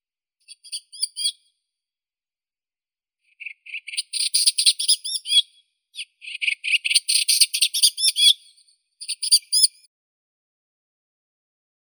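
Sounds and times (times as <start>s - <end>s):
olivaceous warbler Hippolais pallida: 3.3s - 9.8s.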